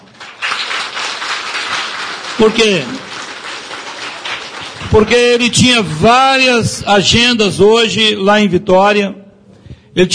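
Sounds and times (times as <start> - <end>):
audience applause: 0.0 - 5.6
speech: 2.4 - 3.0, 4.9 - 9.2, 10.0 - 10.1.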